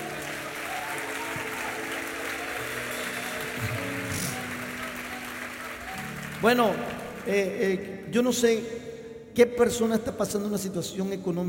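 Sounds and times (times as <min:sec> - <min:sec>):
audience applauding: 0:00.0 - 0:07.9
speech: 0:06.4 - 0:08.8, 0:09.4 - 0:11.4.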